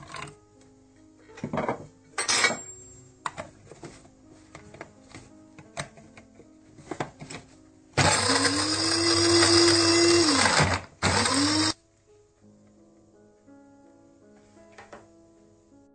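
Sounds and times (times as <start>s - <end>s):
grinder grinding walnuts and almonds: 8.0s - 11.8s.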